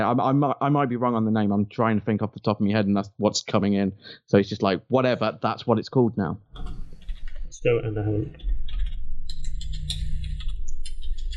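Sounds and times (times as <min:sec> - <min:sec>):
speech: 0:00.0 - 0:06.8, 0:07.5 - 0:08.6
typing on a computer keyboard: 0:06.6 - 0:07.4, 0:08.4 - 0:11.3
steady low hum: 0:06.6 - 0:11.3.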